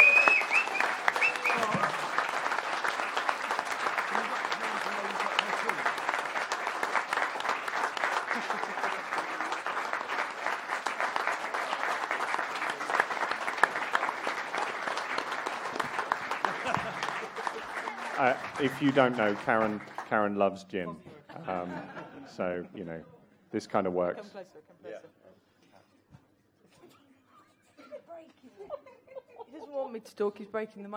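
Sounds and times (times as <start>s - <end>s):
round of applause: 0.0s - 20.4s
laughter: 1.0s - 2.8s, 3.4s - 14.8s, 15.4s - 20.0s, 20.9s - 22.8s, 26.7s - 29.9s
speech: 18.6s - 24.7s, 30.0s - 30.9s.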